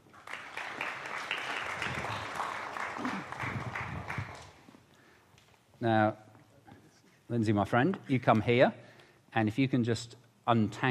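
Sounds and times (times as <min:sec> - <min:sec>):
audience applause: 0:00.0 - 0:04.6
speech: 0:05.8 - 0:06.2, 0:07.3 - 0:10.9.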